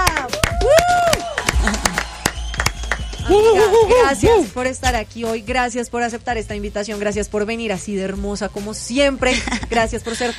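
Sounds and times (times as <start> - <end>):
applause: 0.0 - 3.8
speech: 3.3 - 10.3.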